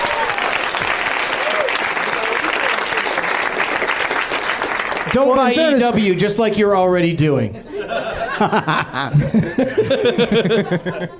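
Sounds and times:
audience applause: 0.0s - 5.8s
speech: 5.2s - 7.6s, 8.4s - 11.1s
laughter: 7.5s - 11.1s.

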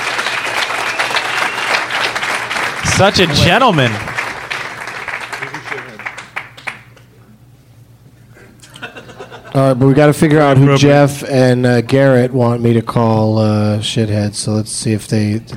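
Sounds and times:
audience clapping: 0.0s - 7.1s
laughter: 2.7s - 4.3s, 5.3s - 6.1s, 8.4s - 10.8s
speech: 3.0s - 4.1s, 9.6s - 15.5s.

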